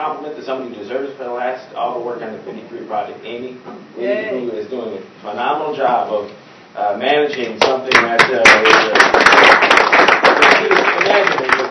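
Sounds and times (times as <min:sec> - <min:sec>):
speech: 0:00.0 - 0:09.8
audience applause for a colleague at a work meeting: 0:07.9 - 0:11.6.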